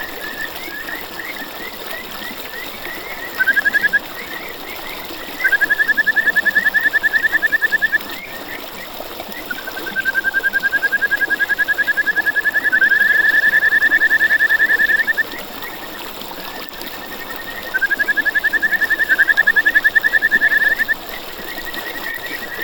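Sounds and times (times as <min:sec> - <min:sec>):
Kajika frog trilling: 0:03.3 - 0:04.3, 0:05.3 - 0:08.1, 0:09.5 - 0:15.4, 0:17.4 - 0:22.5.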